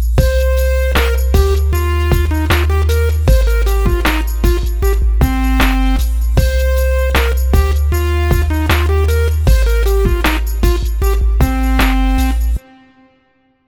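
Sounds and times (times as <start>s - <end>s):
simple sixteenth note rhythms: 0.2s - 12.7s.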